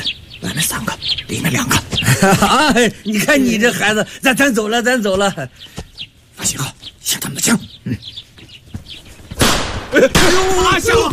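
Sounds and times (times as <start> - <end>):
speech: 0.0 - 5.8, 6.4 - 8.2, 9.4 - 11.1
laughter: 2.0 - 4.0, 9.9 - 11.1
firecrackers crackling: 9.4 - 11.1.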